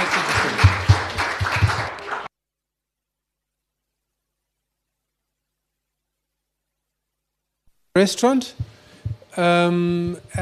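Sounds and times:
audience applause: 0.0 - 2.3
speech: 8.0 - 10.4.

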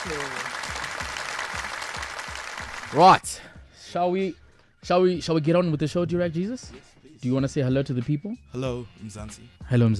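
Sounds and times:
speech: 0.0 - 0.6, 2.9 - 9.9
audience applause: 0.0 - 3.2.

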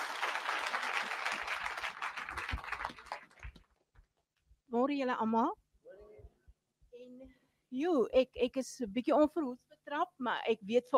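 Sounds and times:
audience applause: 0.0 - 3.6
speech: 4.9 - 5.6, 7.8 - 10.9.

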